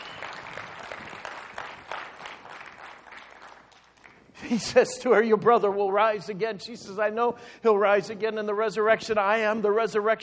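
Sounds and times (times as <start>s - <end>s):
audience clapping: 0.0s - 4.4s
speech: 4.5s - 10.2s.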